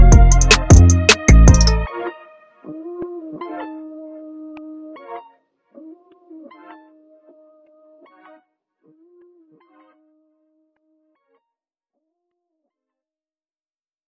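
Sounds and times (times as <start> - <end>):
instrumental rap hip hop fast trap beat: 0.0 - 1.9.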